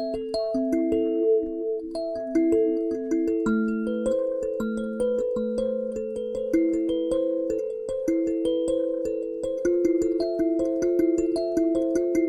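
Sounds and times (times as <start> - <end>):
sansula kalimba playing: 0.0 - 12.2.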